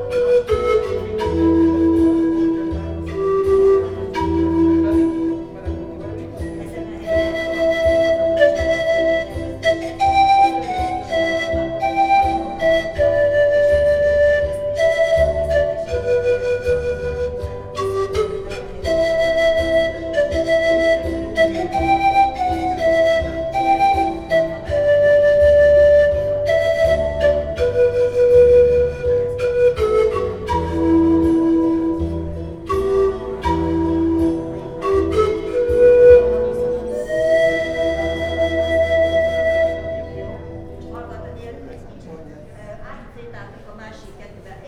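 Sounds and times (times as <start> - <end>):
street musician playing: 0.0 - 42.6.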